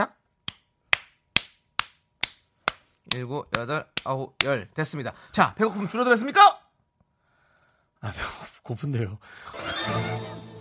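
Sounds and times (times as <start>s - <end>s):
hand slapping own forehead: 0.5s - 4.6s
speech: 3.1s - 6.6s, 8.0s - 10.4s.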